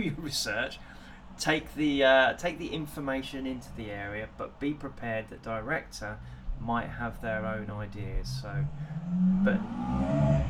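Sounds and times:
speech: 0.0 - 10.4
loud motorbike passing: 8.6 - 10.4.

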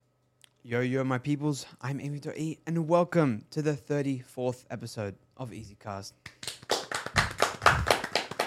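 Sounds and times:
speech: 0.6 - 6.4
loud hand clapping: 6.2 - 8.4.

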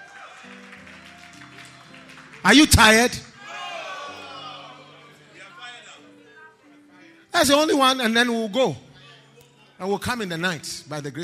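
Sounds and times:
audience clapping: 0.0 - 3.9
speech: 2.4 - 3.2, 7.4 - 8.8, 9.8 - 11.2.

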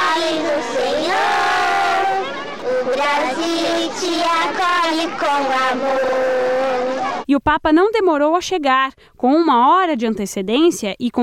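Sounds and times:
crowd singing a welcome song in unison: 0.0 - 7.2
speech: 3.1 - 6.4, 7.3 - 11.2.

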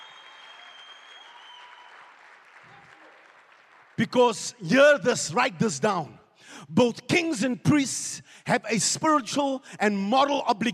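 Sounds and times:
audience clapping hands: 0.0 - 4.3
speech: 4.0 - 10.7.

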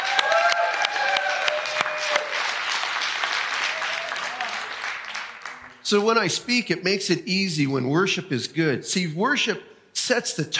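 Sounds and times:
crowd applause: 0.0 - 5.9
speech: 5.9 - 10.5.

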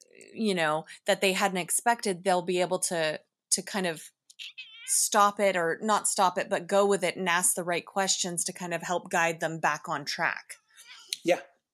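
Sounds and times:
speech: 0.4 - 10.6, 11.2 - 11.5
cat meowing: 4.4 - 5.0.

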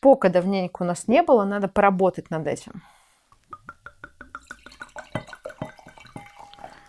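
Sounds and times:
speech: 0.0 - 3.0
red wine glugging from a bottle into a glass: 3.6 - 6.8.

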